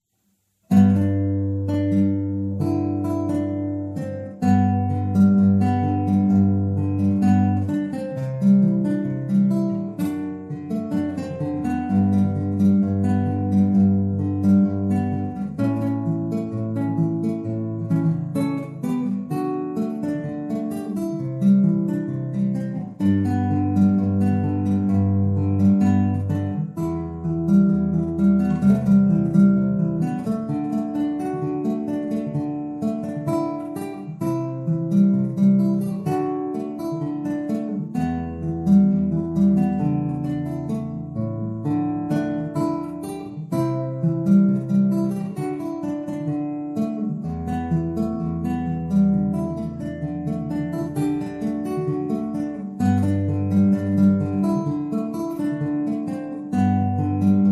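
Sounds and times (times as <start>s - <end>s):
fingerstyle guitar: 0.6s - 57.4s.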